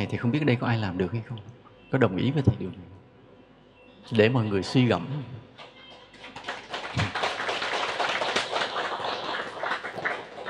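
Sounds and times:
speech: 0.0s - 2.9s, 4.0s - 5.5s
audience clapping in a Vietnamese-language lecture hall: 5.6s - 10.4s.

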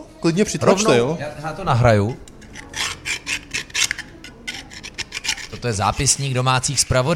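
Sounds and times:
speech: 0.2s - 2.3s, 5.6s - 7.1s
grating salt onto bread: 2.4s - 7.1s.

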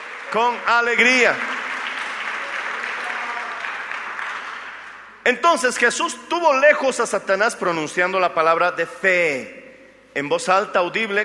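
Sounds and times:
audience applause: 0.0s - 5.9s
speech: 0.3s - 1.5s, 5.3s - 11.2s.

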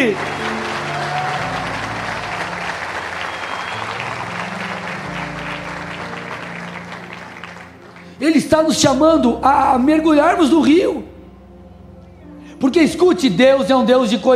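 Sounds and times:
speech: 0.0s - 0.4s, 8.3s - 11.1s, 12.6s - 14.3s
audience applause: 0.0s - 8.2s.

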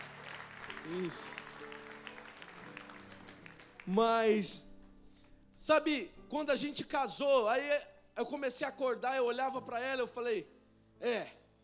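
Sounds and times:
audience applause: 0.0s - 4.5s
speech: 0.8s - 1.4s, 3.9s - 4.7s, 5.6s - 11.4s.

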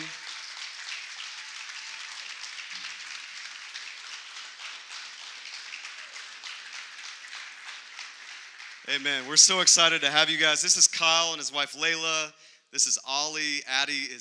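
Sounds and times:
audience applauding a family: 0.0s - 10.6s
speech: 8.9s - 14.1s.

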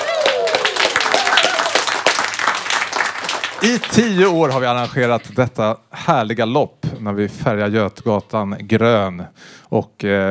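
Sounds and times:
audience cheering and clapping: 0.0s - 5.3s
speech: 3.6s - 10.2s.

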